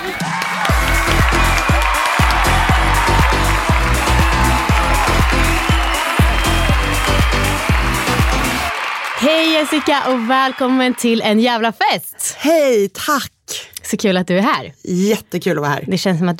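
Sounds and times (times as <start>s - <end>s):
audience applause: 0.0s - 11.4s
speech: 9.4s - 16.3s.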